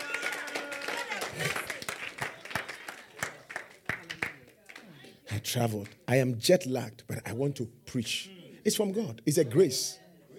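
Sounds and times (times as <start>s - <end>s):
audience clapping: 0.0s - 6.1s
speech: 5.4s - 10.0s.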